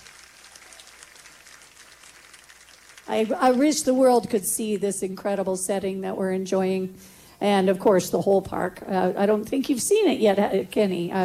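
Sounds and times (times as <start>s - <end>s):
audience clapping: 0.0s - 4.0s
speech: 3.1s - 11.2s.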